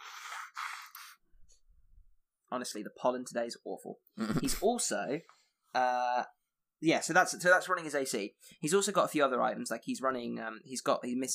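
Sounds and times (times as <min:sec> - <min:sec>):
person blowing nose: 0:00.0 - 0:01.2, 0:04.2 - 0:04.6
speech: 0:02.5 - 0:11.3.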